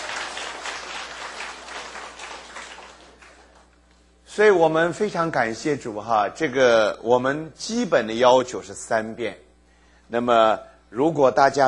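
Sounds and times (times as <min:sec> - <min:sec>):
clapping: 0:00.0 - 0:03.7
speech: 0:04.4 - 0:09.4, 0:10.1 - 0:11.6.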